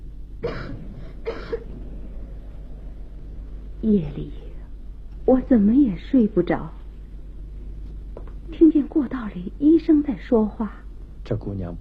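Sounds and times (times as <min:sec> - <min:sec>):
girl coughing: 0:00.4 - 0:01.8
speech: 0:03.8 - 0:04.4, 0:05.3 - 0:06.8, 0:08.6 - 0:11.7.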